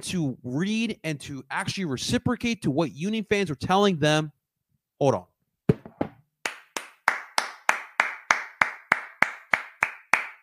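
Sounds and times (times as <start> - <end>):
speech: 0.0 - 4.4, 5.0 - 5.3
hand clapping: 6.4 - 10.4.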